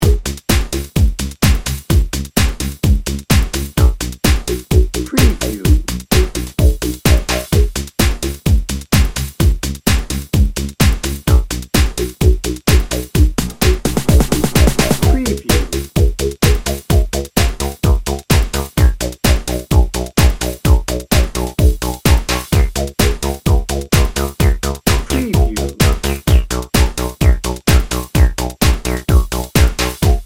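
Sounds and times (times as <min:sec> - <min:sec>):
electro drum and bass: 0:00.0 - 0:30.2.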